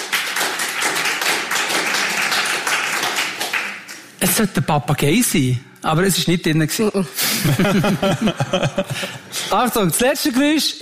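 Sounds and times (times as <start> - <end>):
audience clapping: 0.0 - 4.2
speech: 4.2 - 10.7
laughter: 7.3 - 9.5.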